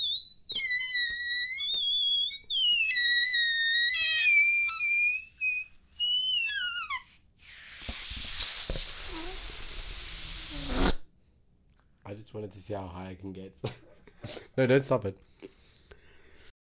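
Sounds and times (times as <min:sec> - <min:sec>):
balloon inflating: 0:00.0 - 0:11.1.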